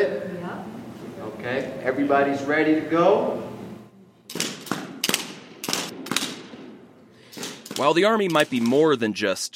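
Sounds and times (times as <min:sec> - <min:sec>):
speech: 0:01.4 - 0:03.5, 0:07.8 - 0:09.5
simulated gunfire from imitation AR-15 rifles at Fort Carson virtual firing range: 0:04.3 - 0:09.0.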